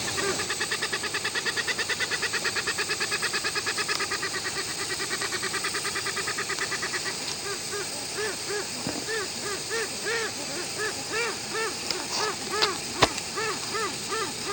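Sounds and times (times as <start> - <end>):
Westland petrels calling: 0.0 - 14.5.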